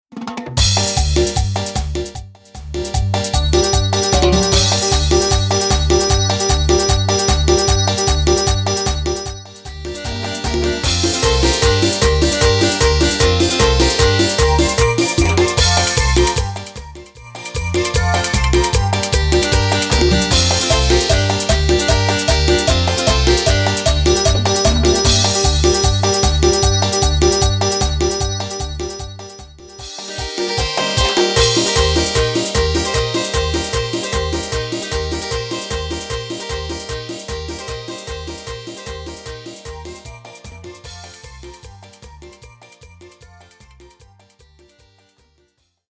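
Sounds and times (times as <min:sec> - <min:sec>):
percussion drums: 0:00.0 - 0:44.8
organ: 0:03.6 - 0:16.7, 0:17.6 - 0:41.2.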